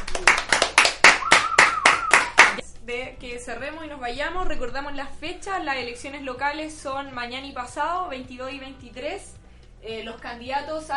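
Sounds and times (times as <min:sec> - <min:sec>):
rhythmic applause: 0:00.0 - 0:02.6
thin whistling tone: 0:01.2 - 0:02.4
speech: 0:02.9 - 0:10.9.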